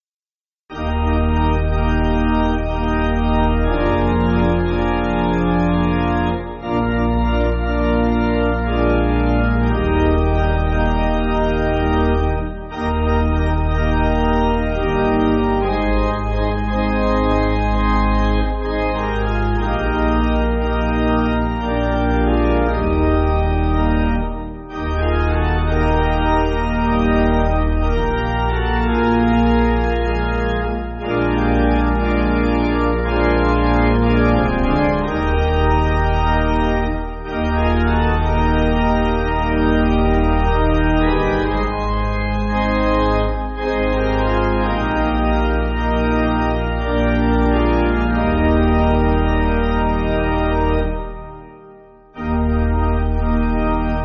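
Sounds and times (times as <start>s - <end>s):
pipe organ playing a hymn: 0.7s - 54.0s.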